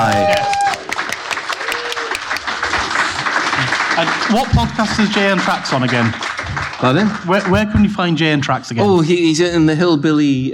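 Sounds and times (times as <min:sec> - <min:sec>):
whoops and cheering voices: 0:00.0 - 0:02.4
crowd clapping: 0:00.0 - 0:08.8
speech: 0:04.0 - 0:10.5.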